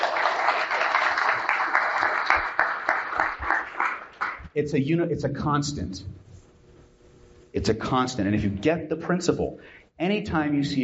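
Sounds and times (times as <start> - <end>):
audience applause: 0.0 - 4.5
speech: 4.6 - 6.2, 7.6 - 10.8.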